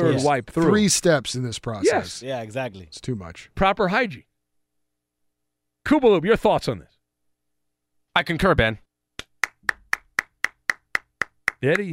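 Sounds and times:
speech: 0:00.0 - 0:04.3, 0:05.8 - 0:06.9, 0:08.2 - 0:08.8, 0:11.6 - 0:11.9
one person clapping: 0:09.2 - 0:11.9.

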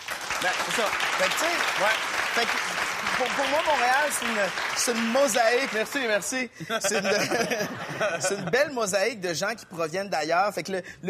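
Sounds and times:
crowd applauding: 0:00.0 - 0:06.5
speech: 0:00.4 - 0:11.0
laughter: 0:06.4 - 0:08.9.

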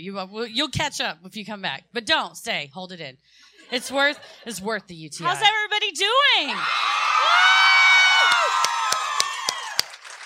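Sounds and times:
speech: 0:00.0 - 0:07.6
live audience cheering and whooping: 0:06.6 - 0:10.2
hands clapping: 0:08.2 - 0:10.2.

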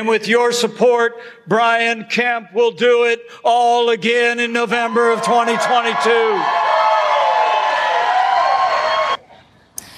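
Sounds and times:
speech: 0:00.0 - 0:06.6
crowd cheering at a political rally: 0:04.8 - 0:09.2.

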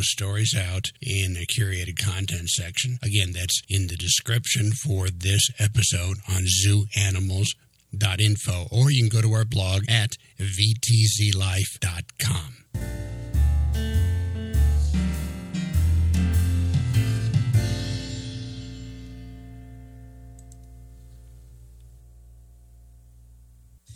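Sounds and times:
speech: 0:00.0 - 0:13.0
emu deep booming rumbles: 0:12.8 - 0:19.2
short music passage: 0:12.8 - 0:20.9.

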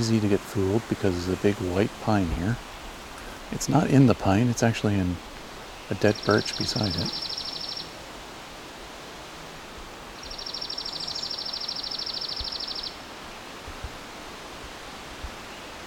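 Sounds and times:
speech: 0:00.0 - 0:02.8, 0:03.5 - 0:05.3, 0:05.9 - 0:07.3
chipping sparrow song: 0:05.6 - 0:07.9, 0:10.2 - 0:13.0.

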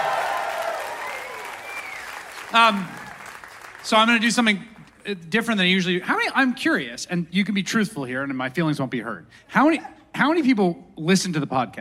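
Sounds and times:
audience applause: 0:00.0 - 0:04.6
speech: 0:02.5 - 0:03.0, 0:03.8 - 0:11.8.

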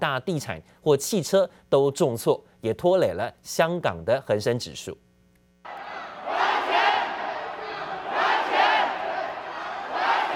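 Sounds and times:
speech: 0:00.0 - 0:05.0
protesting crowd shouting in Evergrande Shenzhen headquarters lobby: 0:05.7 - 0:10.3.

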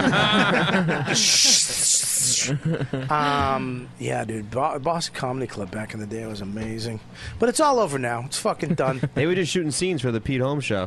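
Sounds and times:
speech: 0:00.0 - 0:01.8, 0:02.4 - 0:10.8
person chuckling: 0:00.3 - 0:03.6
person imitating a sheep urinating: 0:01.1 - 0:02.5.

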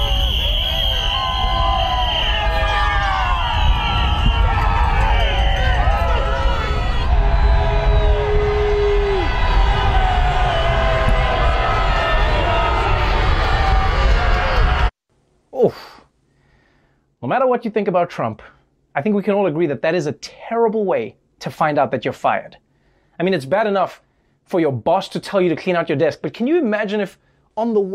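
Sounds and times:
crowd of critics cheering and shouting: 0:00.0 - 0:14.9
speech: 0:17.4 - 0:22.6, 0:23.2 - 0:27.9.

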